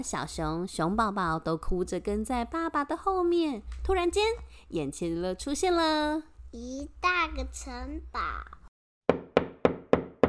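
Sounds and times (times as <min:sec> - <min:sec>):
speech: 0:00.0 - 0:09.2
knocking on a door: 0:09.1 - 0:10.2.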